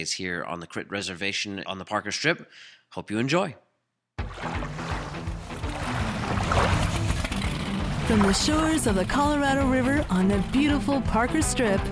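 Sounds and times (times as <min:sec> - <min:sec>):
speech: 0:00.0 - 0:03.6, 0:04.2 - 0:04.8, 0:08.1 - 0:11.9
gourd rattles shaking: 0:05.5 - 0:08.8.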